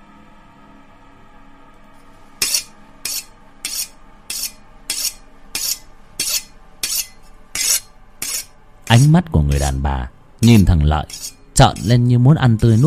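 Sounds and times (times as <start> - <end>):
razor blade being sharpened, scraping: 2.4 - 9.7, 10.4 - 12.0, 12.6 - 12.8
speech: 8.9 - 12.8.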